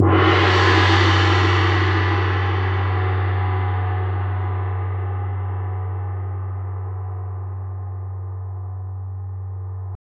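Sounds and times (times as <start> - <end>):
orchestral percussion: 0.0 - 6.0.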